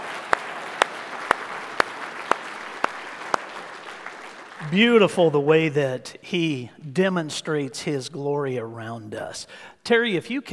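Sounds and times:
audience applause: 0.0s - 4.8s
speech: 4.7s - 10.5s.

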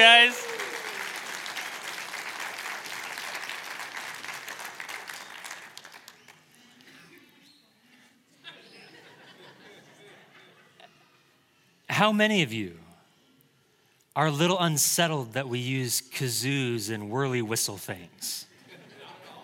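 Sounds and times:
audience applauding the kids: 0.0s - 6.4s
laughter: 8.3s - 11.2s, 18.5s - 19.4s
speech: 12.0s - 12.8s, 14.2s - 18.5s.

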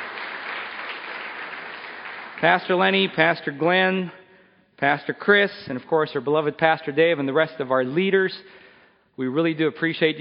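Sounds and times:
audience applause: 0.0s - 2.9s
speech: 2.4s - 4.2s, 4.8s - 8.6s, 9.2s - 10.1s.

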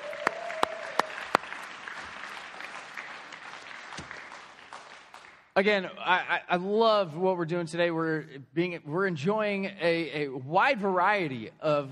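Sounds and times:
audience applause for a band: 0.0s - 5.5s
speech: 5.6s - 11.9s.

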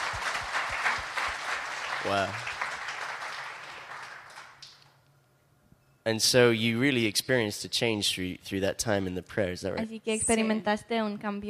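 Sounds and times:
applause: 0.0s - 5.0s
speech: 2.0s - 2.5s, 6.1s - 11.4s.

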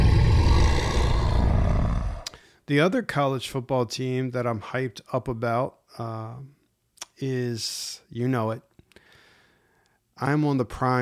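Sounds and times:
grizzly bear growl: 0.0s - 2.3s
speech: 2.7s - 6.6s, 7.2s - 8.7s, 10.2s - 11.0s.

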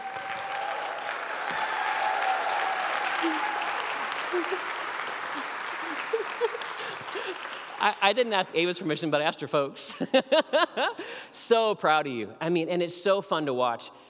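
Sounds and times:
faint voices and cheers: 0.0s - 6.4s
crowd applause: 0.0s - 8.5s
laughter: 2.8s - 8.0s, 9.8s - 11.2s
speech: 3.2s - 3.5s, 4.3s - 4.8s, 7.8s - 14.0s.

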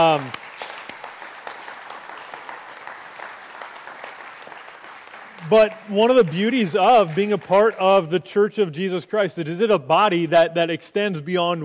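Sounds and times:
speech: 0.0s - 0.4s, 5.5s - 11.6s
audience applauding: 0.0s - 8.0s.

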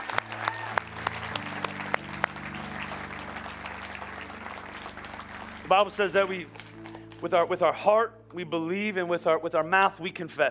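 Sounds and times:
audience clapping: 0.0s - 7.5s
low humming musical backdrop: 0.0s - 10.4s
speech: 5.7s - 6.6s, 7.2s - 10.4s.

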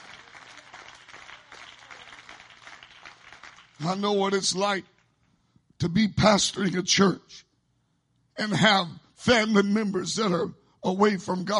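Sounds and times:
audience clapping: 0.0s - 5.2s
speech: 3.8s - 4.9s, 5.8s - 7.5s, 8.4s - 11.5s.

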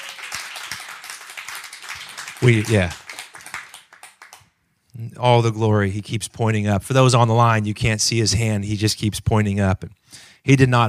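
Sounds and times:
congregation applause for an elderly churchgoer: 0.0s - 4.6s
speech: 2.4s - 3.0s, 5.0s - 10.8s.

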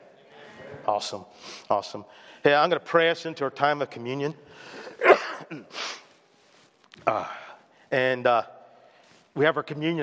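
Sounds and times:
speech: 0.8s - 6.0s, 7.0s - 8.6s, 9.4s - 10.0s
person coughing: 4.9s - 5.8s.

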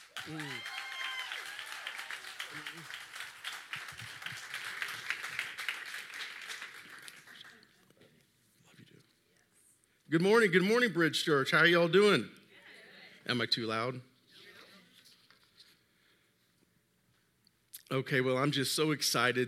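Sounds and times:
audience applause welcoming speaker: 0.0s - 7.8s
speech: 0.2s - 0.7s, 2.5s - 3.0s, 10.1s - 12.4s, 13.3s - 14.1s, 17.9s - 19.4s.

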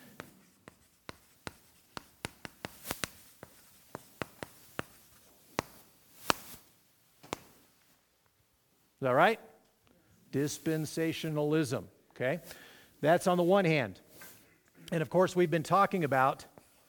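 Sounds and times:
pen scratching and tapping on a chart during a teaching talk: 0.1s - 6.5s
speech: 9.0s - 9.5s, 10.3s - 14.0s, 14.9s - 16.5s.

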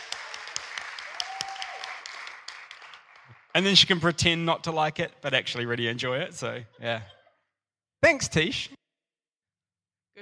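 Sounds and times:
audience clapping: 0.0s - 4.4s
speech: 3.6s - 7.2s, 8.0s - 8.8s.

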